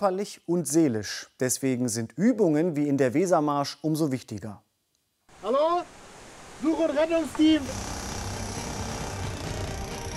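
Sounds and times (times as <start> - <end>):
speech: 0.0 - 4.6, 6.8 - 7.9
sawing through wooden boards: 7.4 - 10.1.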